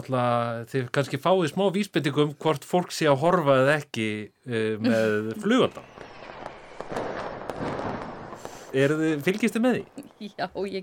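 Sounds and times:
speech: 0:00.0 - 0:06.0, 0:08.7 - 0:10.8
laughter: 0:04.8 - 0:05.8
fireworks crackling and popping: 0:05.2 - 0:10.8.

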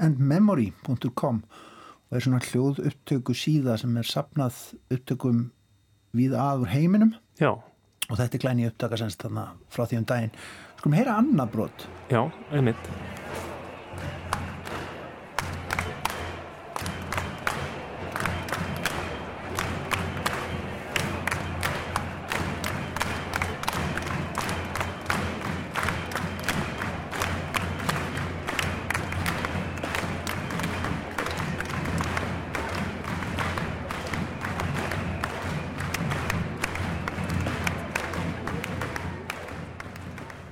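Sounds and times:
speech: 0:00.0 - 0:14.2
dense crowd chanting and shouting: 0:10.4 - 0:40.5
drums pounding in a steady fast rhythm: 0:11.2 - 0:40.5.

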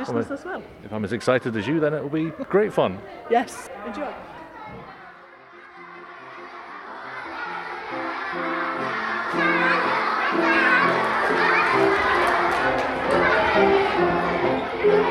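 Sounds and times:
speech: 0:00.0 - 0:04.9
children singing: 0:04.7 - 0:15.0
children dancing and stamping: 0:07.8 - 0:15.0.

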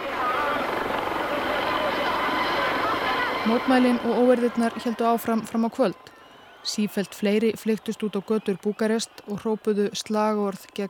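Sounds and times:
helicopter engine and rotor wash flying overhead: 0:00.0 - 0:05.8
speech: 0:03.4 - 0:10.8.

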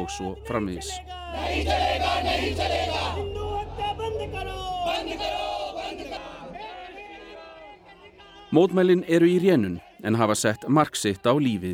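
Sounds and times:
speech: 0:00.0 - 0:06.3, 0:08.5 - 0:11.7
protest crowd shouting slogans in unison: 0:00.0 - 0:10.6
steady low rumble: 0:00.4 - 0:06.8.

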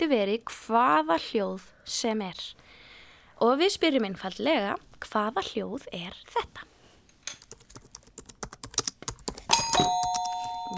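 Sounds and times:
speech: 0:00.0 - 0:02.8, 0:03.4 - 0:06.7
typing on a computer keyboard: 0:07.3 - 0:10.7
bright ringing chime: 0:09.5 - 0:10.7.

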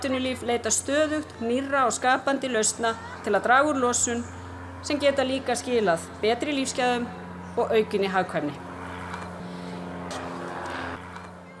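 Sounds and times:
speech: 0:00.0 - 0:08.7
small petrol-powered airplane engine droning: 0:00.0 - 0:11.5.

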